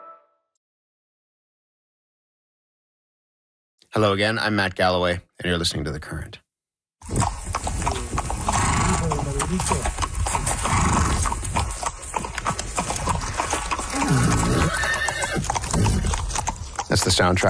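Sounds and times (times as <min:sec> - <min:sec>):
speech: 0:03.9 - 0:06.4, 0:07.0 - 0:07.4, 0:09.5 - 0:10.0, 0:16.9 - 0:17.4
hooves clip-clopping: 0:07.0 - 0:17.4
horse neighing: 0:07.1 - 0:16.8.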